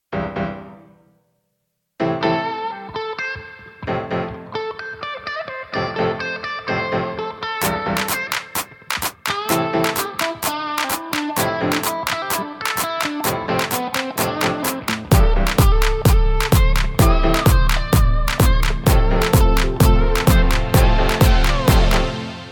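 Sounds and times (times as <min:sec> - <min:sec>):
instrumental music: 0:02.0 - 0:22.4.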